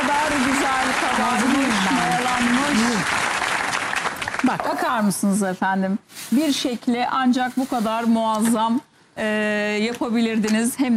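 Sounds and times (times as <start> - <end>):
applause during a salad-making demonstration: 0.0 - 4.7
speech: 4.5 - 10.9.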